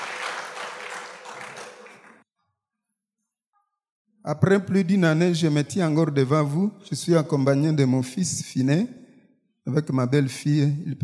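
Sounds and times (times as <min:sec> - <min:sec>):
congregation applauding after a scripture reading at a French-language church service: 0:00.0 - 0:02.2
speech: 0:04.2 - 0:09.0, 0:09.7 - 0:11.0.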